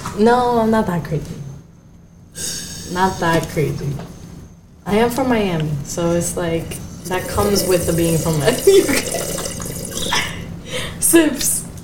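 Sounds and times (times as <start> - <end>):
speech: 0.2 - 1.4, 2.4 - 4.2, 4.8 - 9.2, 11.1 - 11.6
sipping a drink: 6.7 - 10.4.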